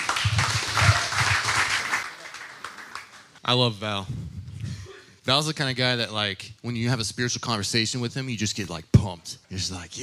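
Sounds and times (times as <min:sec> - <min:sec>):
audience applause: 0:00.0 - 0:03.4
speech: 0:03.5 - 0:04.2, 0:05.3 - 0:10.0.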